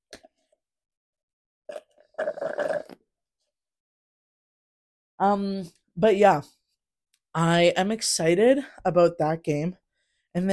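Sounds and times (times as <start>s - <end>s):
person sipping a drink: 1.7s - 3.0s
speech: 5.2s - 6.6s, 7.4s - 10.5s.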